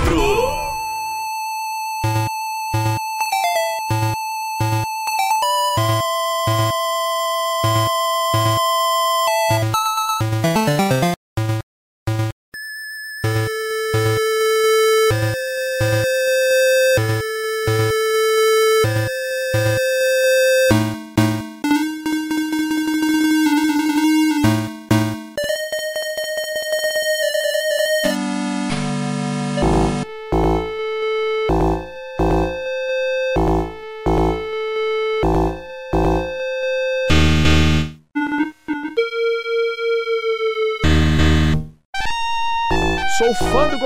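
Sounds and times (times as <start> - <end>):
chiptune-style retro video game music: 0.0 - 43.8.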